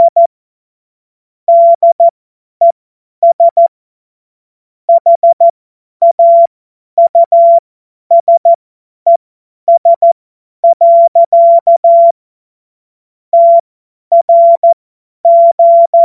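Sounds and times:
Morse code course tones: 0.0 - 0.3, 1.5 - 2.1, 4.9 - 8.5, 9.1 - 12.1, 13.4 - 16.0.

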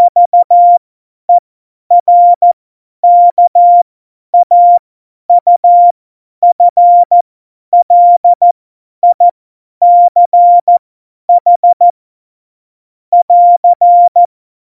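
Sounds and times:
CW Morse code beeps: 0.0 - 0.8, 1.9 - 3.8, 4.4 - 7.2, 7.8 - 11.9, 13.2 - 14.3.

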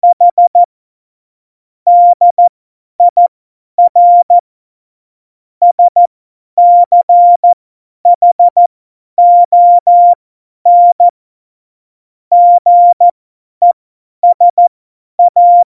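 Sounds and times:
CW Morse code beeps: 0.0 - 0.7, 1.9 - 3.2, 3.8 - 4.4, 5.6 - 8.6, 9.2 - 11.1, 12.3 - 15.7.

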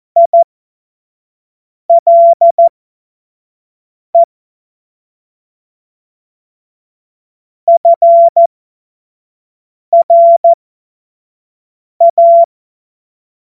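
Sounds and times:
CW Morse code beeps: 0.2 - 0.4, 1.9 - 2.7, 7.7 - 8.5, 10.0 - 10.6, 12.0 - 12.5.

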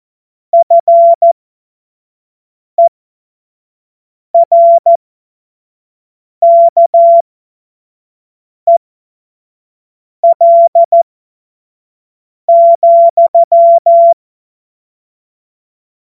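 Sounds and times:
CW Morse code beeps: 0.6 - 1.4, 4.4 - 5.0, 6.4 - 7.2, 10.2 - 11.0, 12.5 - 14.2.

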